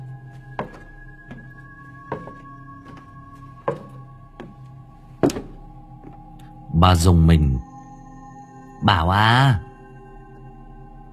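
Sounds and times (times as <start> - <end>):
heavy footsteps thudding through a house: 0.0 - 6.4
speech: 6.8 - 7.7, 8.8 - 9.6.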